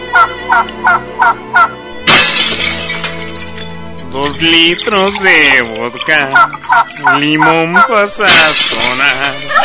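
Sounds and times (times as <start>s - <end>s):
turkey gobbling: 0.1s - 1.7s, 4.8s - 8.1s, 9.3s - 9.6s
speech: 0.6s - 1.5s, 4.4s - 9.6s.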